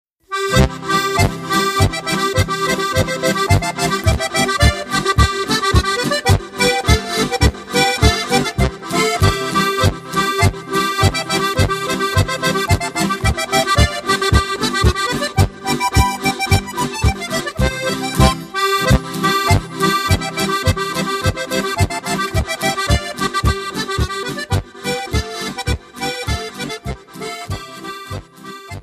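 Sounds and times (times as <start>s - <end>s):
Bavarian boarischer folk dance music: 0.3s - 28.8s.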